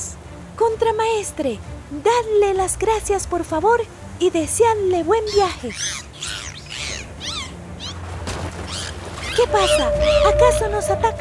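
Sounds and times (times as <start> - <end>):
speech: 0.6 - 6.0, 9.4 - 11.1
humpback whale calls: 5.3 - 8.0, 8.6 - 11.1.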